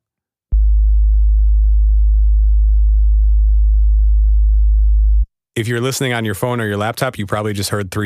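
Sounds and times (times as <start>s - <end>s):
fifty-two hertz sub-bass test tone: 0.5s - 5.3s
speech: 5.6s - 8.0s.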